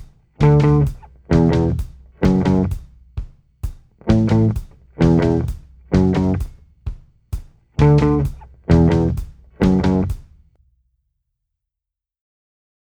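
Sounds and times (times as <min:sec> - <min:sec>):
guitar riff: 0:00.4 - 0:02.8, 0:04.1 - 0:06.4, 0:07.8 - 0:10.1.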